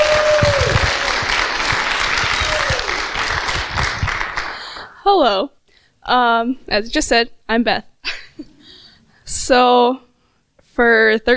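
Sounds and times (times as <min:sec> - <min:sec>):
audience applause: 0:00.0 - 0:05.0
speech: 0:05.1 - 0:08.5, 0:09.3 - 0:10.0, 0:10.8 - 0:11.3.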